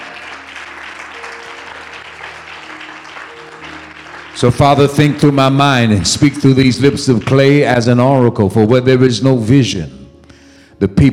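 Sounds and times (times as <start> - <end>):
crowd clapping: 0.0 - 8.0
speech: 4.4 - 10.0, 10.8 - 11.1.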